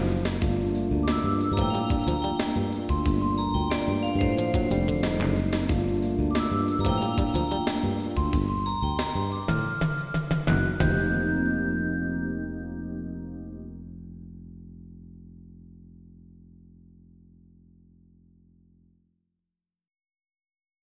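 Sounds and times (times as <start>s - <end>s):
Rhodes electric piano: 0.0s - 14.8s.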